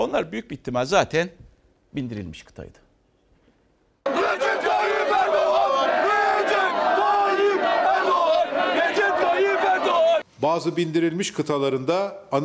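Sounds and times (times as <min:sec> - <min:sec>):
speech: 0:00.0 - 0:02.8, 0:10.4 - 0:12.4
crowd shouting slogans: 0:04.0 - 0:10.2.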